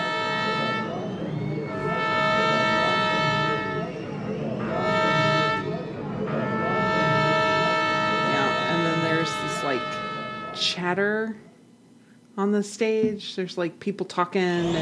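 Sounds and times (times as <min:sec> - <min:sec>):
horns playing like ominous train whistles: 0:00.0 - 0:11.2
speech: 0:10.6 - 0:11.5, 0:12.4 - 0:14.8.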